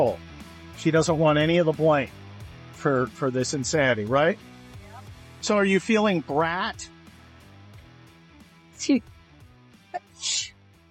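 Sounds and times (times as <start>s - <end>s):
speech: 0.0s - 4.5s, 5.4s - 7.0s, 8.8s - 9.1s, 10.2s - 10.5s
person sneezing: 10.0s - 10.5s.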